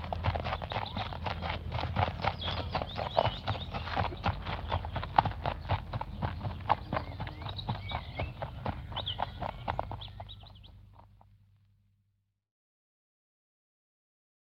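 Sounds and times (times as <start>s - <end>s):
horse walking on gravel: 0.0s - 11.4s.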